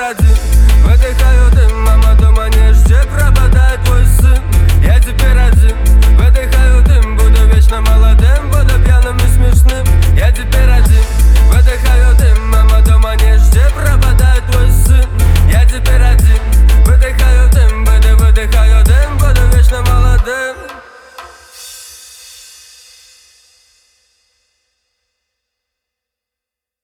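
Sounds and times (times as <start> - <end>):
bass: 0.2 - 20.3.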